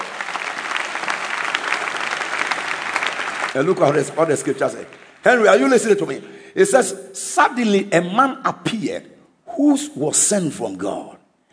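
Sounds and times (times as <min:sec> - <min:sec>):
audience clapping: 0:00.0 - 0:06.2
speech: 0:03.6 - 0:11.2.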